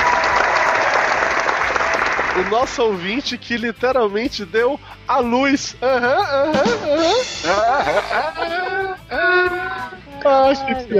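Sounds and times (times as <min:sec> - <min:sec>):
audience applause: 0:00.0 - 0:02.9
speech: 0:02.4 - 0:10.9
laughter: 0:06.1 - 0:10.0.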